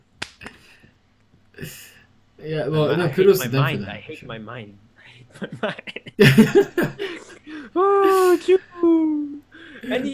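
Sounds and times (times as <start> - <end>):
hand clapping: 0.2 - 0.6
speech: 1.6 - 7.1, 7.8 - 8.7, 9.8 - 10.1
laughter: 5.3 - 8.5.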